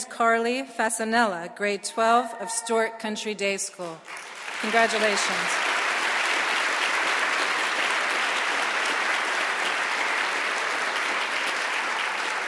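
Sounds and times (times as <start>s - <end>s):
speech: 0.2s - 5.7s
round of applause: 4.0s - 12.4s.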